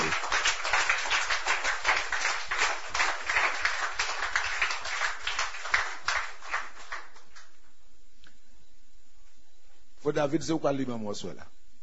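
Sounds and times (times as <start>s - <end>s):
crowd clapping: 0.0s - 7.7s
speech: 10.1s - 11.6s.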